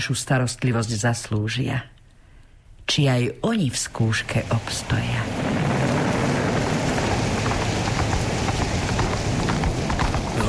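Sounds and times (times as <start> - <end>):
speech: 0.0 - 2.0, 2.9 - 5.6
heavy rain and wind in a storm: 3.7 - 10.4
galloping horse hoofbeats: 3.9 - 10.4.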